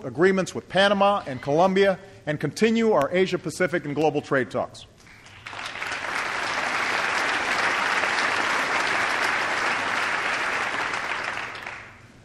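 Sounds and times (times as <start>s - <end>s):
speech: 0.0s - 4.9s
audience applause from a large crowd: 5.1s - 12.0s.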